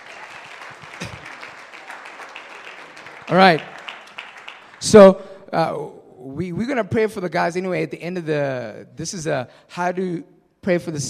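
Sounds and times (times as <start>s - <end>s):
crowd clapping hands: 0.0s - 5.3s
speech: 3.3s - 3.7s, 4.8s - 11.0s.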